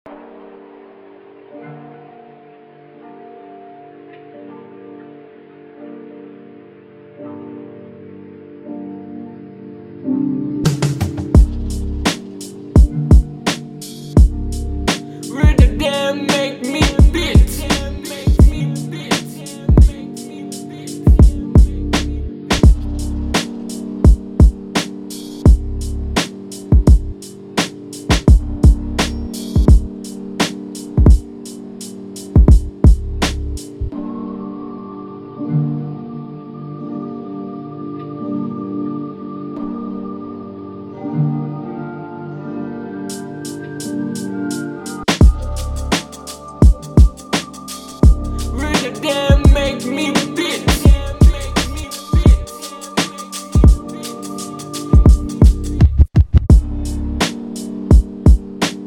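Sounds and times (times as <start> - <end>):
boom bap beat: 10.7 - 27.0, 27.6 - 33.7, 44.5 - 58.8.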